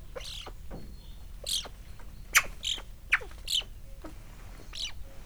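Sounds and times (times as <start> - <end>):
Eurasian magpie giving harsh rasping chatter: 0.2 - 0.6, 1.4 - 4.1, 4.7 - 5.0.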